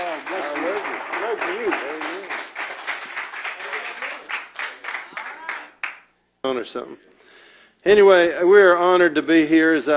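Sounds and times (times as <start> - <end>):
audience applause welcoming guests: 0.0 - 6.0
speech: 6.4 - 7.1, 7.8 - 9.9.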